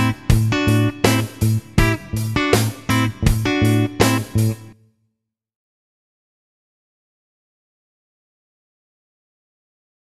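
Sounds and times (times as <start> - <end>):
rhythm guitar: 0.0 - 4.8.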